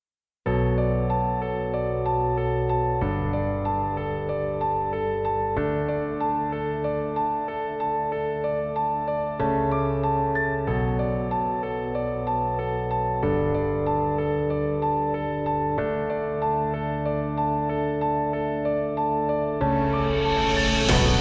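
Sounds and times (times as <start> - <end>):
melancholic music: 0.6 - 21.2.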